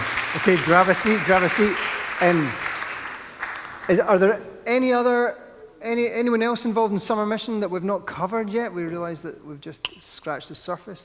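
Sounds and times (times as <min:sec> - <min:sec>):
audience cheering and applauding: 0:00.0 - 0:04.1
speech: 0:00.4 - 0:02.7, 0:03.9 - 0:11.0.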